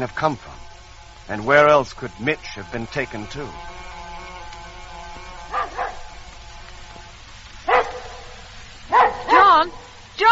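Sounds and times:
speech: 0.0s - 0.5s, 1.3s - 3.7s
dog barking: 5.5s - 6.1s, 7.7s - 8.3s, 8.9s - 9.9s.

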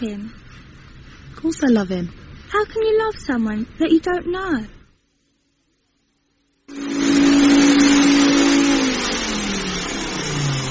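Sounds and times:
speech: 0.0s - 0.4s, 1.3s - 4.8s
vacuum cleaner running: 6.7s - 10.7s.

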